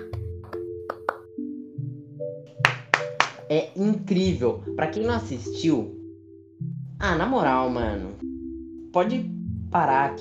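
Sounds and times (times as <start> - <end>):
hands clapping: 0.0 - 1.3, 2.6 - 3.5
speech: 3.5 - 6.0, 7.0 - 8.3, 8.9 - 10.2.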